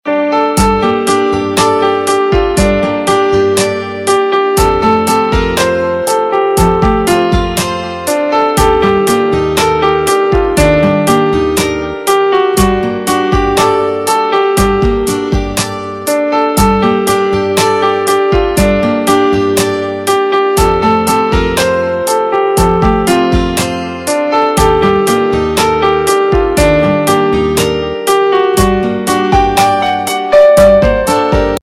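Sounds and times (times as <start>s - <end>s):
instrumental ringtone: 0.3s - 31.6s.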